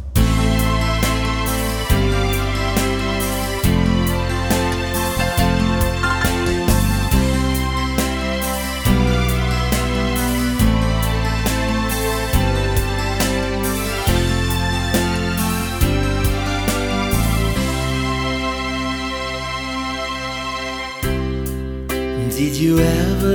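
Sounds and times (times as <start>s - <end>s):
Hollywood solo music: 0.2s - 23.2s.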